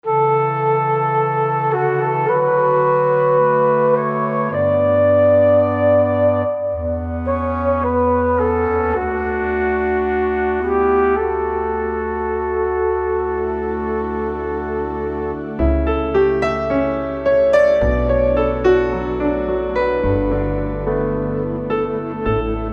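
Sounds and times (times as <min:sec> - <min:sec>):
mellow orchestral music: 0:00.0 - 0:22.7.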